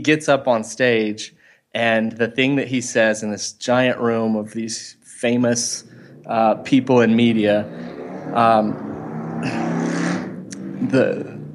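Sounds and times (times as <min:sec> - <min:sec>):
speech: 0:00.0 - 0:10.0, 0:10.8 - 0:11.3
motorcycle passing: 0:05.3 - 0:11.5.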